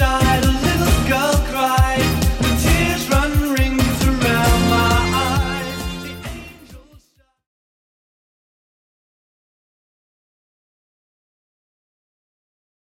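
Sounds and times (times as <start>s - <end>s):
80s-style music at 134 bpm: 0.0s - 7.1s.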